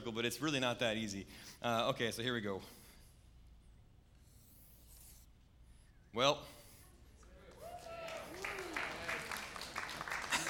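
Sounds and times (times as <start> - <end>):
speech: 0.0 - 2.8, 6.1 - 6.6
audience clapping: 7.2 - 10.4.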